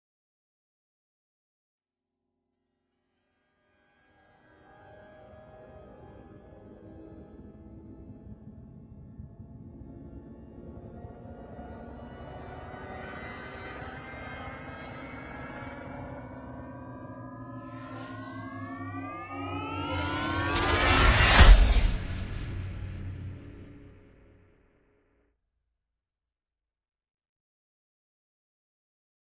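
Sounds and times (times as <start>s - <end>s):
hyperbolic riser sound effect: 10.8s - 24.4s.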